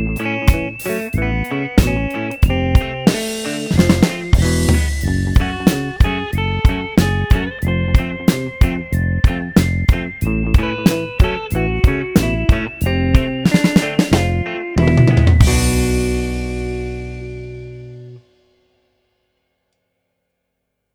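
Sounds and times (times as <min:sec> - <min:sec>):
guitar: 0:00.0 - 0:18.4
drums: 0:00.0 - 0:18.8.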